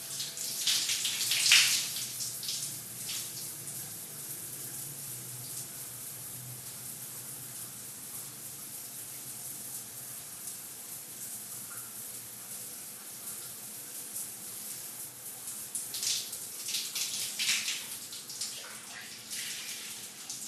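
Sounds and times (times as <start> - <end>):
household shower running in a bathroom: 0.0 - 20.4.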